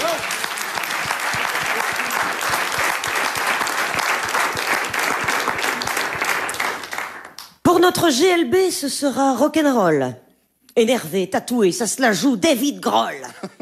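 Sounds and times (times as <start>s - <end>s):
audience applause: 0.0s - 7.4s
speech: 7.8s - 10.2s, 10.8s - 13.6s.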